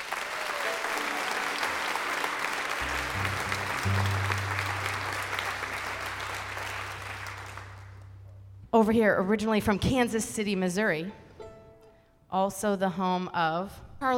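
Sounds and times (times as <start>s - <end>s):
crowd applause welcoming a fiddler onto the stage: 0.0s - 8.4s
low sustained hum: 2.8s - 9.4s
speech: 8.8s - 11.2s, 12.3s - 14.1s.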